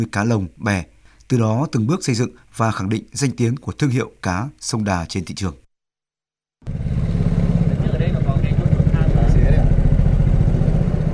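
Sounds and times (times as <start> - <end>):
speech: 0.0 - 5.6
motorboat engine running: 6.6 - 11.1.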